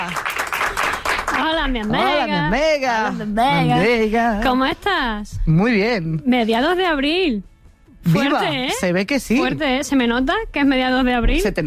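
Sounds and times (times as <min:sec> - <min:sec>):
applause, clapping hands: 0:00.0 - 0:02.0
speech: 0:01.7 - 0:11.6.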